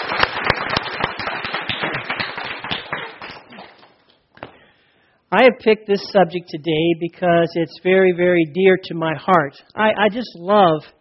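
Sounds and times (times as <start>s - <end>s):
applause: 0.0s - 4.0s
speech: 5.3s - 11.0s.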